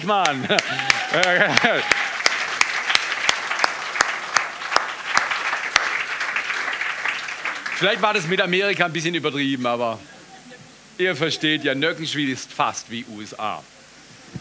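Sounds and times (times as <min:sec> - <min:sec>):
speech: 0:00.0 - 0:02.0, 0:07.8 - 0:10.2, 0:11.0 - 0:13.8
audience applause: 0:00.0 - 0:08.6
laughter: 0:00.2 - 0:02.1.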